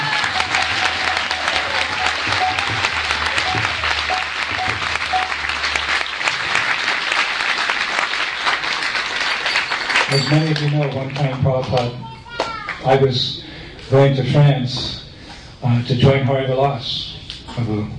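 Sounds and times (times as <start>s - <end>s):
faint cheers: 0.0s - 4.7s
low hum: 0.0s - 6.9s
audience applause: 0.0s - 11.8s
speech: 10.3s - 12.1s, 12.8s - 15.0s, 15.6s - 17.9s.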